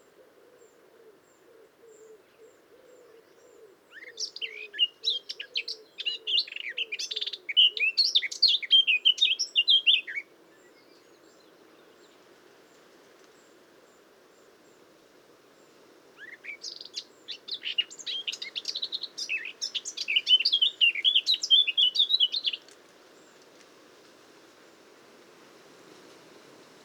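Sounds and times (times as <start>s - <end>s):
faint low cooing: 0.0s - 4.2s
Eurasian blackcap singing: 3.9s - 10.3s, 16.2s - 23.5s.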